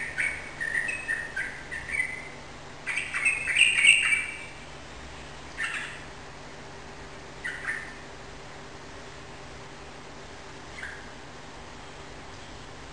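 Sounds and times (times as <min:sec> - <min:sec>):
yellow-vented bulbul singing rapid continuous chattering song indoors in a room: 0:00.0 - 0:04.7, 0:05.5 - 0:06.1, 0:07.3 - 0:08.2.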